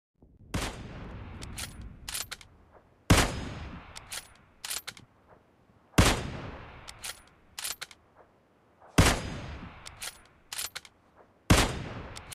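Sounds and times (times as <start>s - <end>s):
Kar 98 rifle gunshot ringtone: 0.5s - 1.8s, 3.1s - 4.0s, 6.0s - 7.0s, 8.9s - 10.0s, 11.5s - 12.3s.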